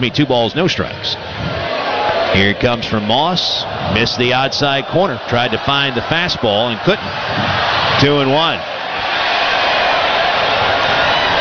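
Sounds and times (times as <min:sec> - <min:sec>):
speech: 0:00.0 - 0:01.6, 0:02.3 - 0:08.7
students cheering and applauding a passing train: 0:01.2 - 0:11.3.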